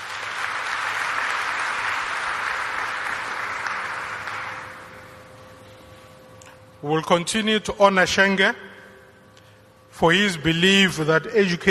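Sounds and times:
audience round of applause: 0:00.0 - 0:05.0
speech: 0:06.8 - 0:08.7, 0:10.0 - 0:11.7.

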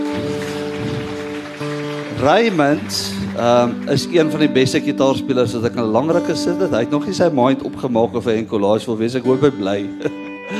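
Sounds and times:
audience applause: 0:00.0 - 0:06.2
speech: 0:02.2 - 0:10.5
laughter: 0:09.8 - 0:10.5.

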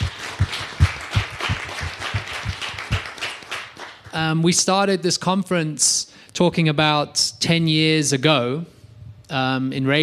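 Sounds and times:
audience applause: 0:00.0 - 0:04.3
speech: 0:04.2 - 0:10.0.

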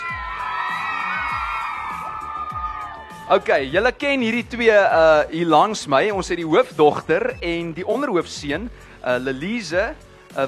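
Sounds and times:
audience applause: 0:00.0 - 0:03.5
speech: 0:03.3 - 0:10.4.

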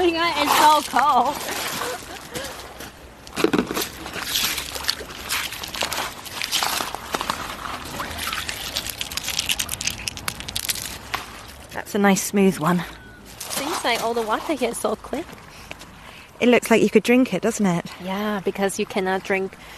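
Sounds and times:
speech: 0:00.0 - 0:02.0, 0:11.9 - 0:13.0, 0:13.8 - 0:15.4, 0:16.4 - 0:19.7
footsteps on loose lakeshore pebbles and stones: 0:00.1 - 0:11.7, 0:13.3 - 0:15.9.

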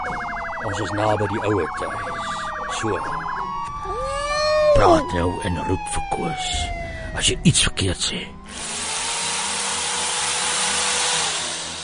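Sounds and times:
speech: 0:00.6 - 0:04.2, 0:04.8 - 0:08.8
dentist's drill whirring: 0:08.5 - 0:11.8.

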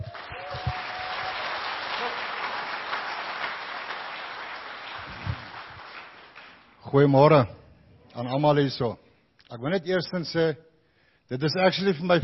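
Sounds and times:
audience applause: 0:00.0 - 0:06.8
speech: 0:06.9 - 0:07.6, 0:08.2 - 0:10.7, 0:11.3 - 0:12.2.

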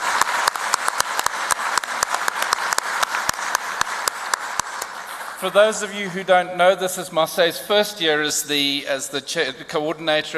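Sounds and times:
audience applause: 0:00.0 - 0:06.2
speech: 0:05.4 - 0:10.3.

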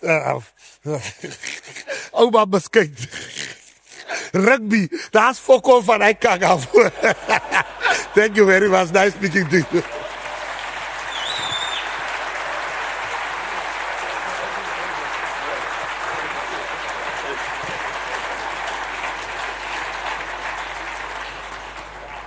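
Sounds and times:
speech: 0:00.0 - 0:03.6, 0:04.3 - 0:07.6, 0:08.2 - 0:10.0
laughter: 0:00.9 - 0:04.9, 0:06.1 - 0:22.2
audience applause: 0:06.2 - 0:22.2
audience whistle at a business news conference: 0:09.4 - 0:18.4.

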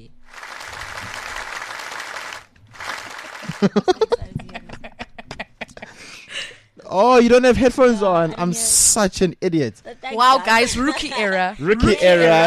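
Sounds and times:
studio applause: 0:00.3 - 0:04.0
laughter: 0:03.2 - 0:06.1, 0:07.3 - 0:08.7, 0:10.6 - 0:12.4
speech: 0:03.6 - 0:04.2, 0:06.9 - 0:12.4.

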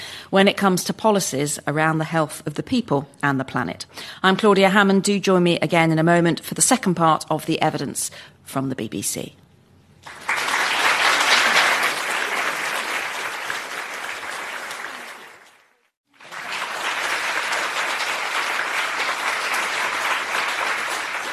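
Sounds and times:
speech: 0:00.3 - 0:09.4
live audience applause at Wellcome Collection in London: 0:10.0 - 0:21.3.

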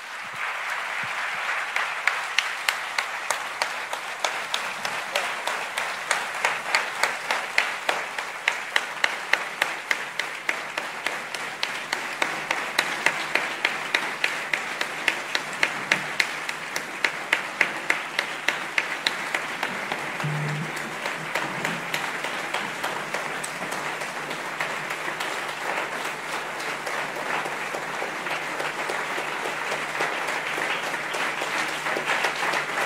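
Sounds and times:
crowd applauding: 0:00.0 - 0:32.8.

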